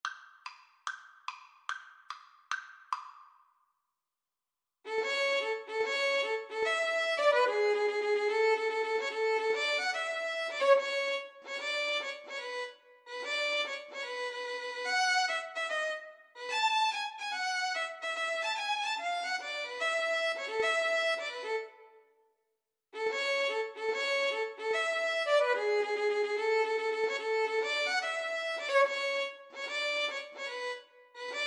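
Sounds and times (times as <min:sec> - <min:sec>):
violin duet: 0:04.9 - 0:21.8, 0:23.0 - 0:31.4.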